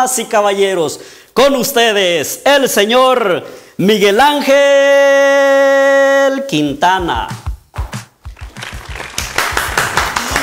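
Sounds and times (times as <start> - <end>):
speech: 0.0 - 5.6, 6.3 - 7.4
audience applause for a guest: 8.3 - 10.4.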